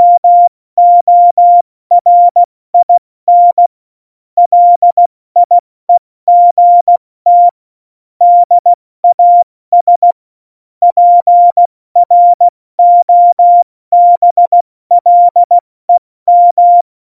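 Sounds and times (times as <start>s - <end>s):
CW Morse code beeps: 0.0s - 3.7s, 4.4s - 5.6s, 6.3s - 7.6s, 8.2s - 10.2s, 10.9s - 15.6s, 16.3s - 17.0s.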